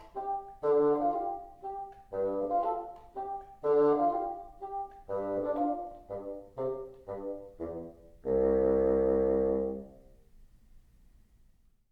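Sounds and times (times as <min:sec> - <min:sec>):
teacher part on bassoon: 0:00.0 - 0:10.2.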